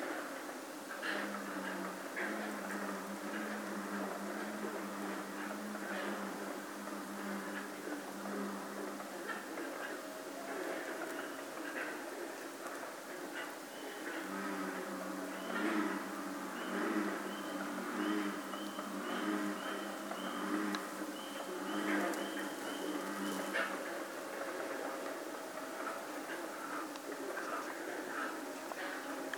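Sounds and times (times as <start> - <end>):
frog chorus at West Pond: 0.0 - 29.3.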